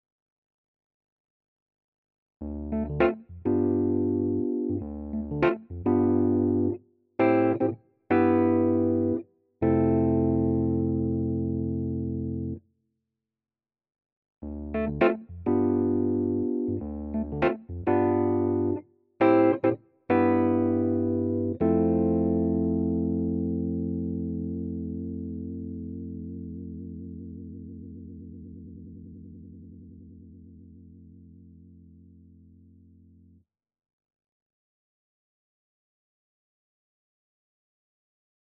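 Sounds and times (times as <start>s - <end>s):
electric piano with vibe effect: 2.4s - 12.6s, 14.4s - 26.3s.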